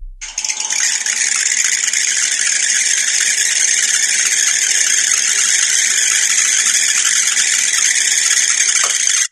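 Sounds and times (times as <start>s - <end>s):
rapid rattling crackle: 0.2s - 9.3s
squishy balls squealing while bouncing on hot pan: 0.2s - 9.3s.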